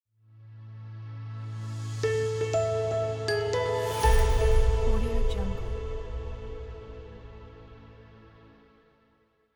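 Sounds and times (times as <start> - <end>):
calm logo jingle: 2.1 - 8.2.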